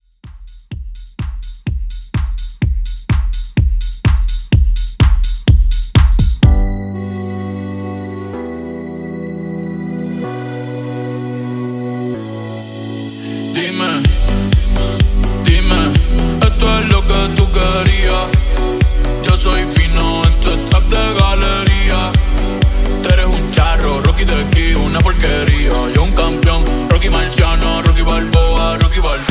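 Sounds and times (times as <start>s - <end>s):
house music mix: 0.0s - 29.2s.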